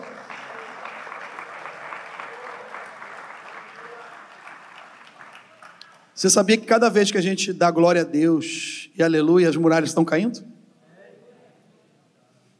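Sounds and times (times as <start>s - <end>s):
audience applause: 0.0s - 6.2s
speech: 6.2s - 10.6s.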